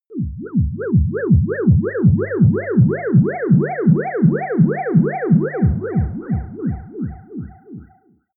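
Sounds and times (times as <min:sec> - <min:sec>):
ululation: 0:00.1 - 0:07.9.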